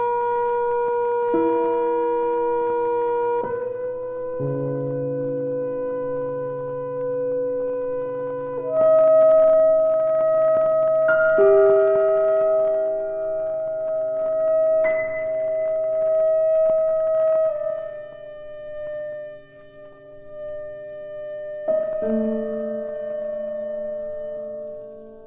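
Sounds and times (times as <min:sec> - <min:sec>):
saxophone: 0:00.0 - 0:24.8.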